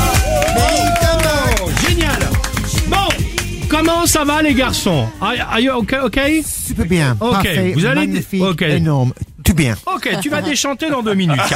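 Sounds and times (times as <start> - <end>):
studio audience applause: 0.0 - 3.6
speech: 4.0 - 11.5.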